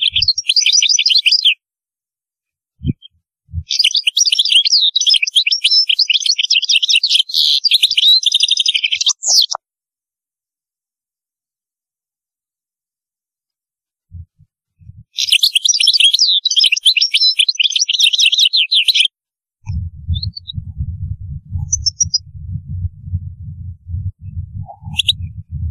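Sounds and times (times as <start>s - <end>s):
European goldfinch twittering song: 0.0s - 1.6s, 2.8s - 9.6s, 14.8s - 19.1s, 19.7s - 22.3s, 24.2s - 25.6s
soft low thumps: 2.8s - 3.7s, 14.1s - 15.2s, 19.6s - 25.6s
steady low rumbling noise: 14.1s - 15.0s, 19.6s - 25.6s.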